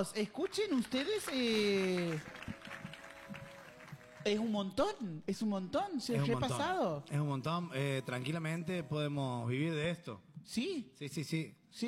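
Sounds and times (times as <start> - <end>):
speech: 0.0 - 2.6, 4.2 - 11.8
audience applause: 0.5 - 4.4.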